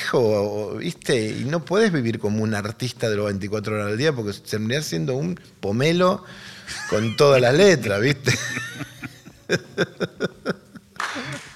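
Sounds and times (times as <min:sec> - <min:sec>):
speech: 0:00.1 - 0:08.8, 0:09.5 - 0:10.6
laughter: 0:06.7 - 0:11.5
spontaneous studio audience applause: 0:11.0 - 0:11.5.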